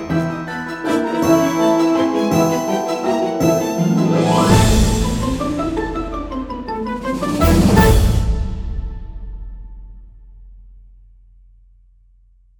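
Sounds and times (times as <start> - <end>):
free spin slot machine music: 0.8 - 8.1.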